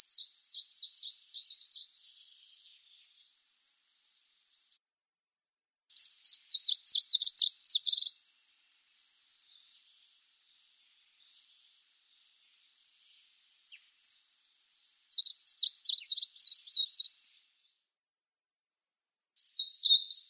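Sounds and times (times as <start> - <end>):
sulphur-bellied warbler: 0.0 - 4.8, 6.0 - 8.2, 9.2 - 17.4, 19.4 - 20.2.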